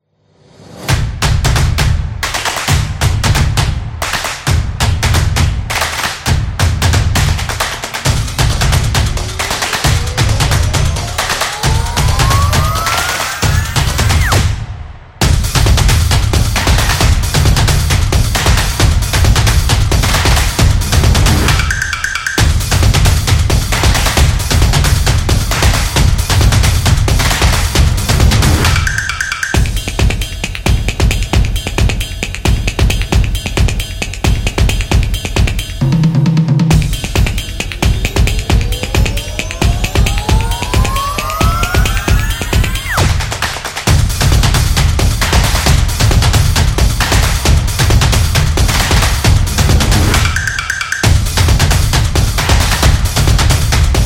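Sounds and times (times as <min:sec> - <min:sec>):
upbeat drum: 0:00.9 - 0:54.0.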